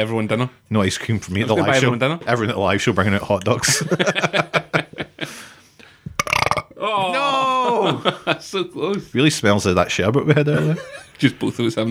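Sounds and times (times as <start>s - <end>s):
speech: 0.0s - 4.7s, 8.0s - 11.8s
laughter: 3.5s - 5.6s, 6.8s - 9.1s, 9.9s - 11.8s
burp: 6.2s - 6.8s.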